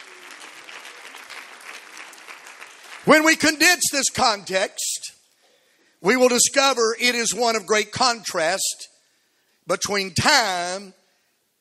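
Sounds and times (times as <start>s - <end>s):
church congregation clapping in praise during a service: 0.0s - 4.5s
speech: 3.0s - 5.1s, 6.0s - 8.9s, 9.7s - 11.0s.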